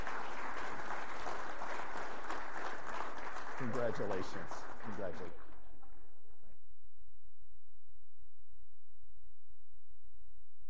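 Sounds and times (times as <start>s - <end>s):
celebratory round of applause: 0.0s - 6.2s
speech: 3.6s - 5.4s.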